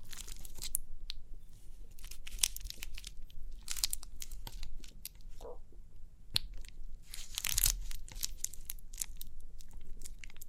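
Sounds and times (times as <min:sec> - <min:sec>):
faint low rumble: 0:00.0 - 0:10.4
papery crinkly crackling and tearing: 0:01.9 - 0:05.0, 0:07.0 - 0:10.4.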